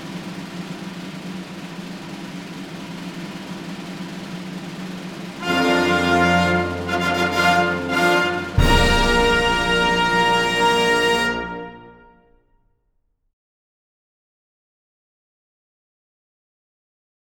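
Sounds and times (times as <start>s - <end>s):
long drum roll: 0.0s - 11.9s
arrival fanfare: 5.4s - 12.4s.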